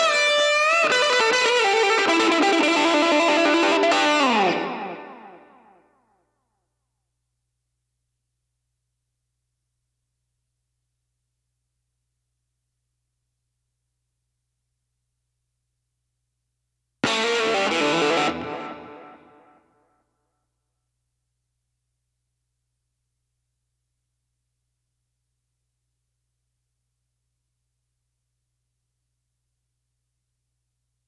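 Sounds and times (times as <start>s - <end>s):
lead guitar: 0.0s - 5.8s, 17.0s - 19.6s.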